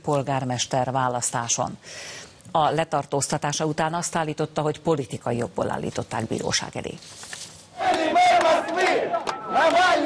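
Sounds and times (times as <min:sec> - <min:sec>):
speech: 0:00.0 - 0:07.3
large crowd cheering and chanting at a railway station: 0:07.8 - 0:10.0.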